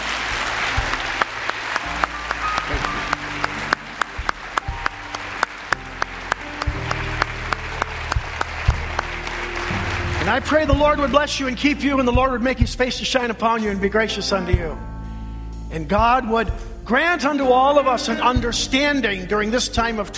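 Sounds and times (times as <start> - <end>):
audience applause: 0.0 - 11.3
speech: 10.3 - 14.9, 15.7 - 20.1.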